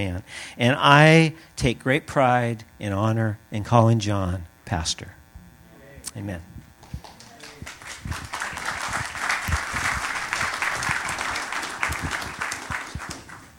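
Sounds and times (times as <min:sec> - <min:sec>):
speech: 0:00.0 - 0:05.2, 0:06.1 - 0:06.6
crowd applause: 0:06.9 - 0:13.5.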